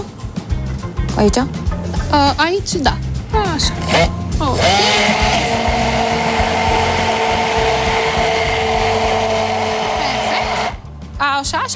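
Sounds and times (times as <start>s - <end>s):
speech: 1.2s - 6.1s, 11.4s - 11.7s
electric blender whirring while a Romanian cake is made: 3.8s - 10.8s.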